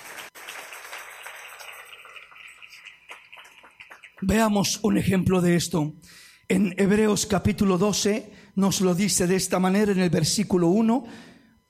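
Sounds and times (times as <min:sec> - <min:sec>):
audience applauding: 0:00.0 - 0:04.4
speech: 0:04.2 - 0:11.3.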